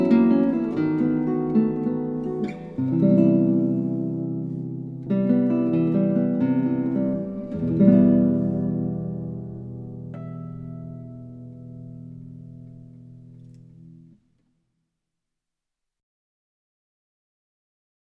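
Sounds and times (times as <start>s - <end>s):
guitar playing: 0.0s - 14.2s.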